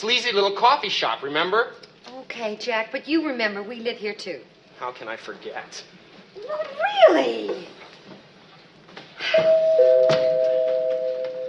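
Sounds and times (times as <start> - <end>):
speech: 0.0 - 7.8, 9.2 - 10.3
two-note doorbell chiming: 9.4 - 11.4.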